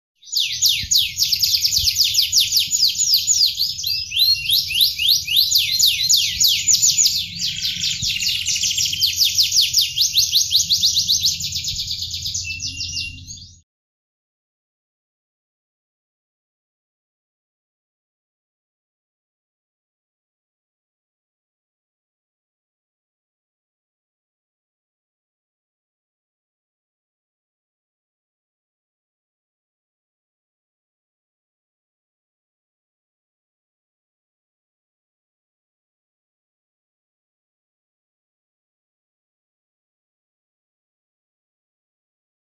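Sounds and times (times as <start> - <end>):
canary: 0.2 - 13.6.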